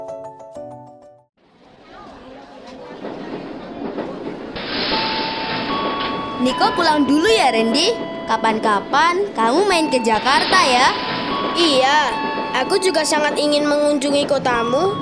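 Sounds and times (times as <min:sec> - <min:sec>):
moving train travelling from Yogyakarta to Jakarta: 0:01.7 - 0:14.9
short melodic tune of bright chime-like notes: 0:04.9 - 0:14.9
speech: 0:06.5 - 0:14.9.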